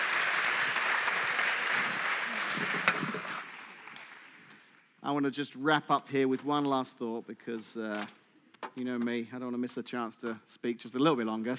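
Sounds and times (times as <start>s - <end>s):
audience applause: 0.0s - 4.7s
speech: 5.1s - 8.2s, 8.8s - 11.5s.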